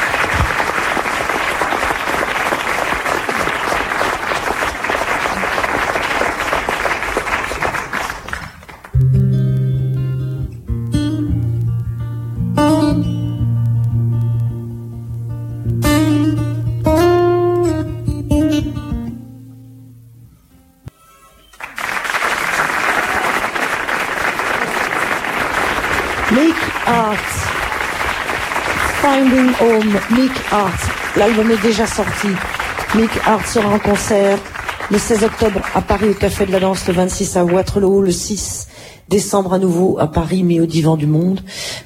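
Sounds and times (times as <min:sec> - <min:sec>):
crowd applauding: 0:00.0 - 0:09.0, 0:21.4 - 0:37.9
guitar music with sustained notes: 0:08.9 - 0:21.0
speech: 0:29.9 - 0:41.6.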